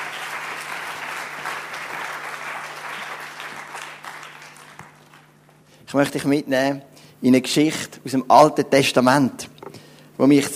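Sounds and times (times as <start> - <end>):
big audience applause: 0.0 - 5.5
speech: 5.9 - 9.5, 10.2 - 10.5.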